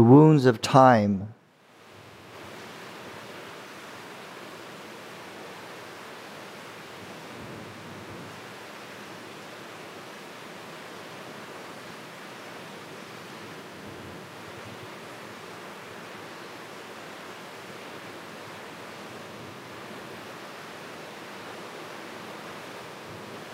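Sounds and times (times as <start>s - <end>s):
speech: 0.0s - 1.4s
rain falling: 1.8s - 23.5s.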